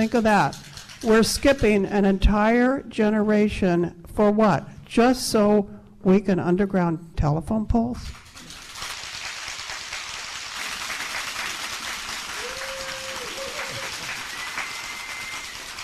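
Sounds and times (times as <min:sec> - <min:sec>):
speech: 0:00.0 - 0:08.2
audience applause: 0:08.3 - 0:15.8.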